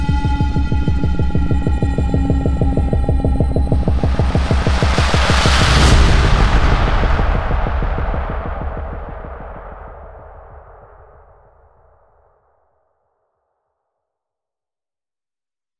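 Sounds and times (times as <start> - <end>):
hit: 0.2 - 11.7.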